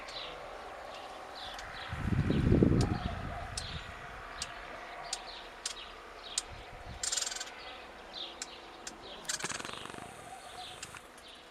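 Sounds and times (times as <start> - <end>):
faint chirps of other birds: 2.8 - 11.4
Eurasian blackcap hard clicking tac calls: 4.4 - 7.6, 8.2 - 11.4.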